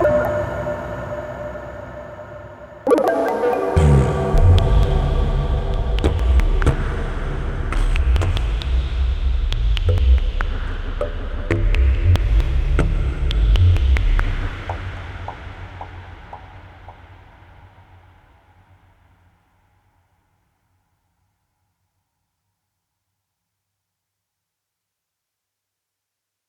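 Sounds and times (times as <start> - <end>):
underwater ambience: 0.0 - 17.0.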